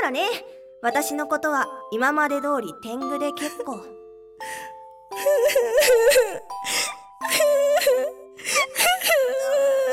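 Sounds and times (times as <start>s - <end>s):
speech: 0.1s - 9.7s
person crying: 5.1s - 9.9s.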